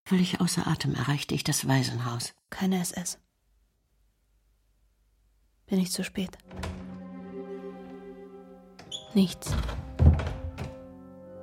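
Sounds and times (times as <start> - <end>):
speech: 0.1 - 3.2, 5.7 - 6.8, 9.2 - 10.3
door pushed open with heavy dull thud: 6.5 - 7.0, 9.5 - 10.8.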